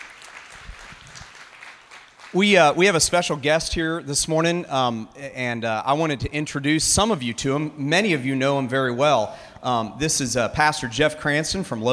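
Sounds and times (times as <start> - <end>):
crowd applauding: 0.0 - 2.9
speech: 2.3 - 11.9.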